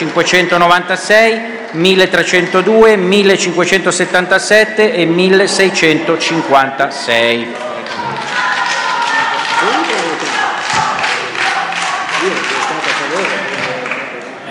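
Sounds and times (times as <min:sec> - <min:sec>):
speech: 0:00.1 - 0:08.0
murmuring voices: 0:05.7 - 0:14.4
voices calling out: 0:07.4 - 0:14.0
applause in the Senate chamber: 0:07.6 - 0:14.4.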